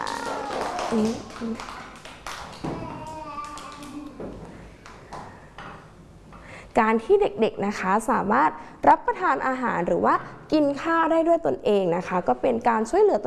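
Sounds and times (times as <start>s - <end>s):
children clapping for a classmate: 0.0s - 5.4s
speech: 0.9s - 1.8s, 6.8s - 13.2s.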